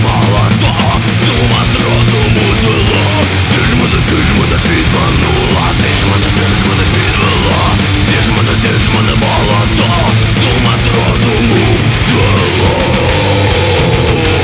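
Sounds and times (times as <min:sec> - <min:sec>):
thrash metal version of a Ukrainian folk song: 0:00.0 - 0:14.4.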